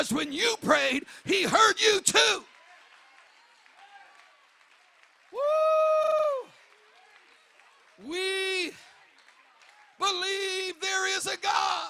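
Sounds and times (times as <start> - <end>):
speech: 0.0 - 2.5, 8.0 - 8.8, 10.0 - 11.8
audience clapping hands: 1.4 - 11.0.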